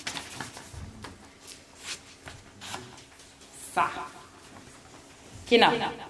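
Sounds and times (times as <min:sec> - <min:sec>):
sheets of paper being folded in half by a group: 0:00.0 - 0:02.9
speech: 0:03.8 - 0:04.2, 0:05.5 - 0:06.0.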